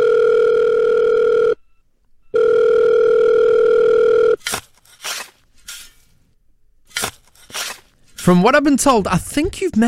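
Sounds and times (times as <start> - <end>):
telephone dial tone for a sound riddle: 0.0 - 1.6, 2.3 - 4.4
speech: 8.3 - 9.8.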